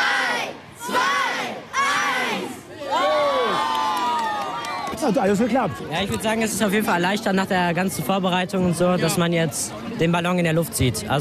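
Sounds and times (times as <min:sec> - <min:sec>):
schoolchildren cheering at weather balloon launch: 0:00.0 - 0:05.0
speech: 0:05.1 - 0:11.2.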